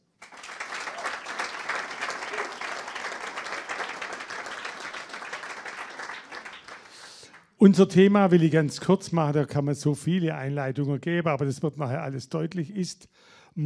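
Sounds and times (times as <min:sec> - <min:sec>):
audience applause: 0:00.1 - 0:07.4
speech: 0:07.6 - 0:13.6.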